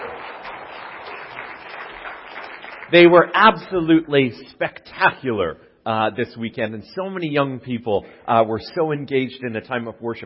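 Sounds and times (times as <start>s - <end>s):
audience applause: 0.0s - 3.2s
speech: 2.9s - 10.2s.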